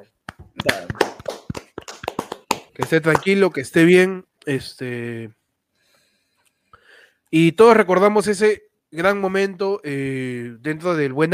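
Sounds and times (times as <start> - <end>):
speech: 0.0 - 1.3, 2.8 - 5.4, 7.3 - 11.3
hands clapping: 0.2 - 3.6.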